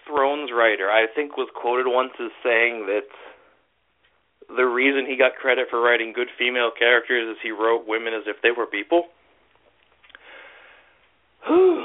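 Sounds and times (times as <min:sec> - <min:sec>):
speech: 0:00.1 - 0:03.3, 0:04.5 - 0:09.2, 0:11.4 - 0:11.8
person gasping for breath while recording: 0:10.2 - 0:11.8.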